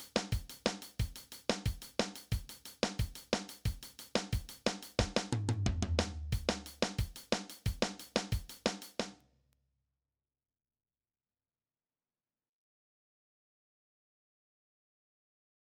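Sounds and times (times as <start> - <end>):
drum kit: 0.0 - 9.1.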